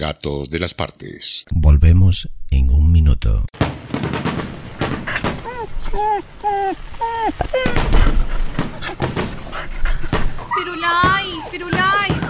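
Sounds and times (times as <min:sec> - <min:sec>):
speech: 0:00.0 - 0:05.2, 0:05.9 - 0:08.3, 0:10.6 - 0:12.2
fireworks exploding: 0:03.6 - 0:12.2
dog whining yelps: 0:04.8 - 0:12.2.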